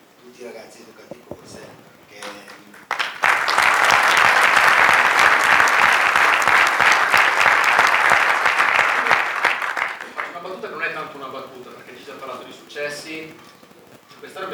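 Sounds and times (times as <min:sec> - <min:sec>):
speech: 0:00.3 - 0:03.0
audience applause: 0:02.1 - 0:10.6.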